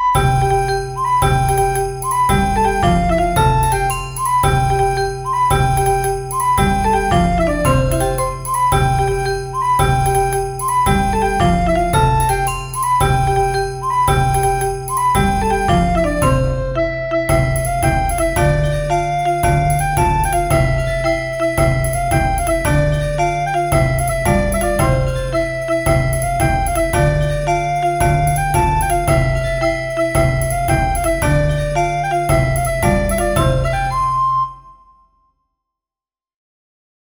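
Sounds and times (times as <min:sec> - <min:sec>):
instrumental ensemble playing a Galician muineira from Lugo: 0:00.1 - 0:34.4.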